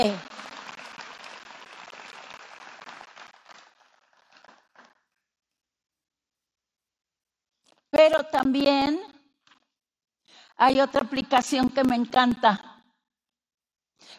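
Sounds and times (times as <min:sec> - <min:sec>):
speech: 0:00.0 - 0:00.3, 0:08.0 - 0:09.1, 0:10.6 - 0:12.7
audience applause: 0:00.0 - 0:05.0.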